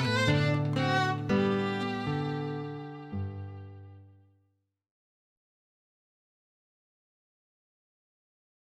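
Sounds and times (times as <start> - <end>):
adagio minuet music: 0.0 - 4.2.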